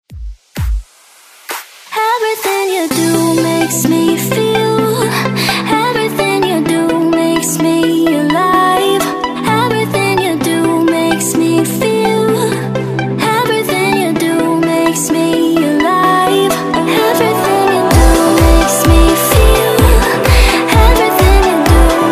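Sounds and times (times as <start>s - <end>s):
house music: 0.1s - 22.1s.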